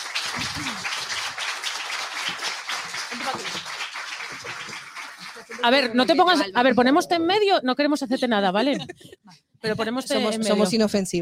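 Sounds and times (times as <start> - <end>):
audience applause: 0.0 - 6.4
speech: 0.4 - 1.0, 5.6 - 11.2
laughter: 8.6 - 9.3.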